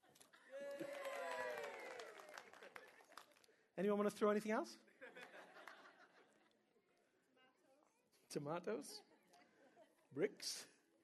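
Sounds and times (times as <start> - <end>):
crowd cheering: 0.0 - 3.2
audience clapping: 0.0 - 3.6
speech: 3.8 - 4.9, 8.4 - 9.1, 10.1 - 10.7
laughter: 4.9 - 6.6.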